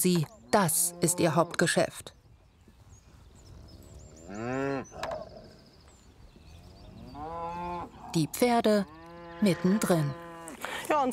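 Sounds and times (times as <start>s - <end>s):
speech: 0.0s - 2.2s, 4.3s - 5.1s, 8.1s - 11.1s
cow mooing: 0.8s - 1.6s, 4.2s - 5.5s, 8.8s - 10.6s.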